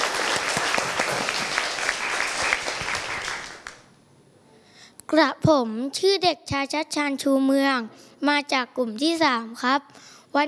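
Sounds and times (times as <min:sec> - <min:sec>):
audience applause: 0:00.0 - 0:03.9
speech: 0:05.1 - 0:10.4.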